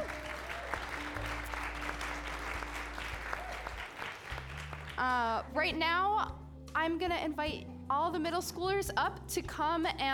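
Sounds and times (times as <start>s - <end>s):
audience applause: 0.0s - 5.0s
speech: 5.0s - 10.1s.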